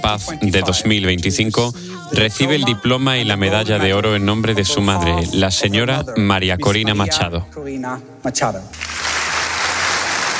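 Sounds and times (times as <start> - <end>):
speech: 0.0 - 9.0
audience applause at award ceremony: 8.8 - 10.3.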